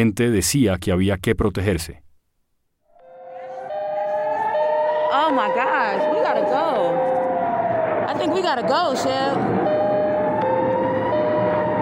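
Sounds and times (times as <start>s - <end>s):
speech: 0.0s - 2.0s, 5.1s - 7.2s, 8.1s - 9.6s
air raid siren wailing: 3.0s - 11.7s.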